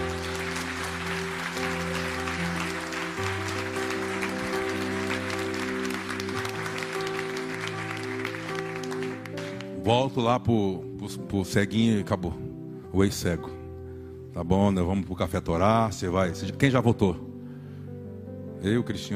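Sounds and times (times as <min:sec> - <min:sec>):
audience applauding loudly: 0:00.0 - 0:09.9
sustained keyboard chords: 0:00.0 - 0:19.1
speech: 0:09.9 - 0:13.6, 0:14.4 - 0:17.3, 0:18.6 - 0:19.1.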